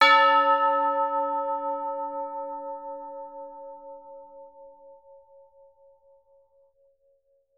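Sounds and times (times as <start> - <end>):
tubular bell A4: 0.0 - 5.8.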